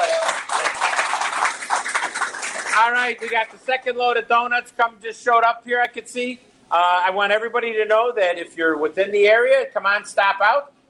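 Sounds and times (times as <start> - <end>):
crowd applause: 0.0 - 3.4
speech: 2.8 - 10.8.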